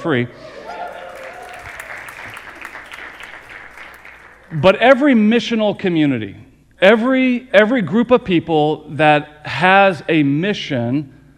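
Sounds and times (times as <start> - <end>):
speech: 0.0 - 0.6, 4.5 - 11.2
audience applause: 0.6 - 4.6.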